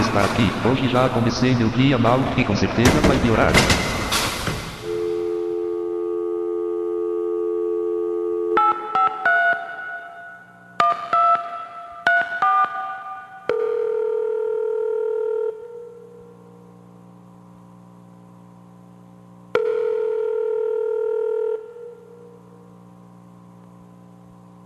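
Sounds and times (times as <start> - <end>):
speech: 0.2 - 3.9
telephone ringback tones: 4.8 - 16.3, 19.6 - 22.4
telephone dial tone: 4.9 - 9.7, 13.5 - 16.1, 19.6 - 22.1.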